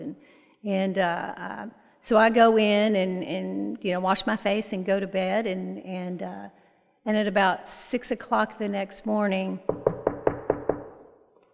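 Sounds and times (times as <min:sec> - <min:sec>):
speech: 0:00.6 - 0:09.9
knocking on a wooden door: 0:09.7 - 0:11.2.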